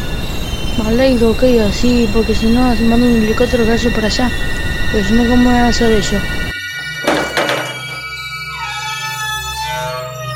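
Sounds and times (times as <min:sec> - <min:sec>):
speech: 0:00.8 - 0:06.5
door opening by itself: 0:06.5 - 0:10.3.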